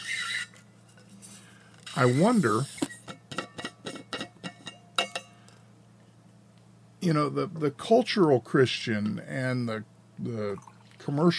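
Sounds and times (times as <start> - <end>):
squeaky thermos squealing: 0.0 - 0.6, 1.8 - 3.1
speech: 2.0 - 2.8, 7.0 - 11.3
coffee being poured: 10.5 - 11.0.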